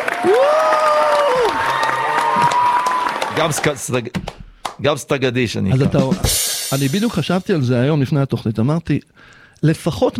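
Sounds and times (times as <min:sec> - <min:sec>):
audience applause: 0:00.0 - 0:04.1
speech: 0:00.2 - 0:00.7, 0:03.4 - 0:10.1.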